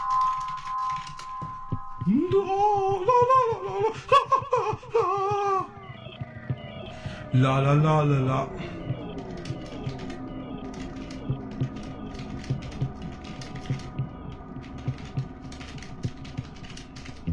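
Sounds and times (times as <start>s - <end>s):
typing on a computer keyboard: 0.0s - 1.5s, 8.9s - 17.3s
steady low hum: 0.0s - 17.3s
speech: 2.1s - 4.3s, 7.3s - 8.7s.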